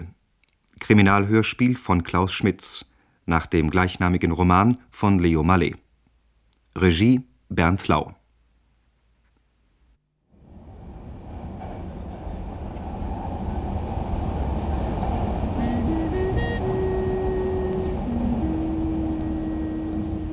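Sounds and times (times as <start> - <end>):
speech: 0.9 - 5.8, 6.8 - 8.2
Paris metro train rumbling: 10.4 - 20.3
stepped tonal whines of accelerating metro carriage: 13.5 - 20.3.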